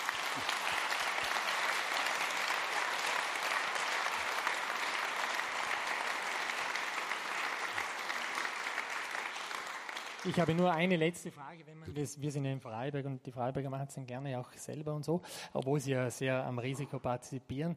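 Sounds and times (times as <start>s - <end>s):
audience applause: 0.0s - 10.9s
speech: 0.4s - 0.6s, 10.2s - 17.7s.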